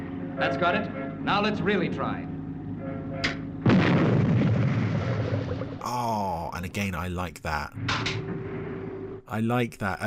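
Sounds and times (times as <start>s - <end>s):
speech: 0.4s - 2.3s, 5.8s - 8.4s, 9.3s - 10.0s
Supercar puppet craft firing its engines: 3.6s - 5.8s.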